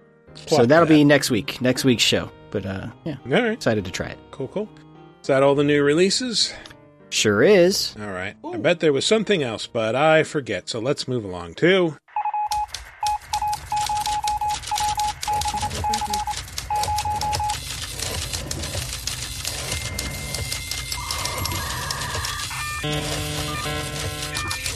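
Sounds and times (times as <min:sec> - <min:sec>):
speech: 0:00.4 - 0:12.0
fax modem warbling beeping tones: 0:12.2 - 0:18.7, 0:19.5 - 0:24.7
typewriter clattering: 0:12.6 - 0:24.7
dot matrix printer printing: 0:13.2 - 0:24.7.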